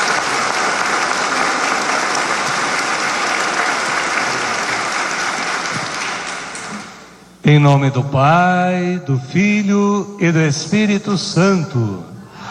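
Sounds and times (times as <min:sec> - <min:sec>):
audience applause in a parish: 0:00.0 - 0:07.2
speech: 0:07.4 - 0:12.1.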